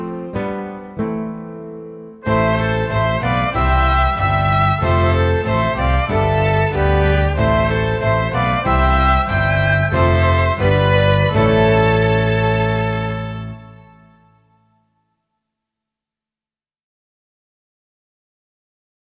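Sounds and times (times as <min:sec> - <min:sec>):
orchestrina: 0:02.2 - 0:14.4.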